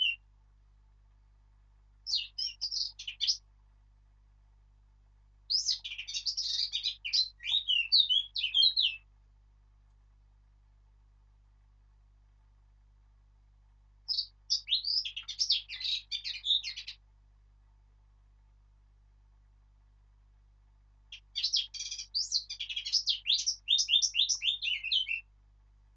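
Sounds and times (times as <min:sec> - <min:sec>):
Sylvia atricapilla: 0:00.0 - 0:00.2, 0:02.1 - 0:03.4, 0:05.5 - 0:09.0, 0:14.1 - 0:17.0, 0:21.1 - 0:25.2.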